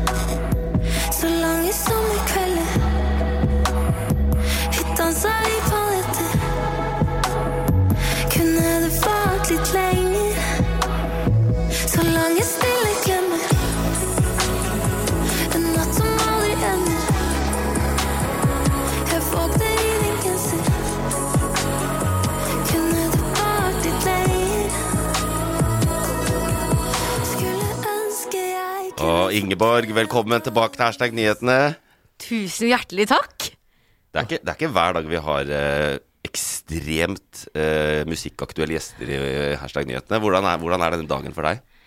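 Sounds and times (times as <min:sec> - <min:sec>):
Norwegian-language pop song: 0:00.0 - 0:31.8
speech: 0:29.3 - 0:33.5, 0:34.1 - 0:41.7.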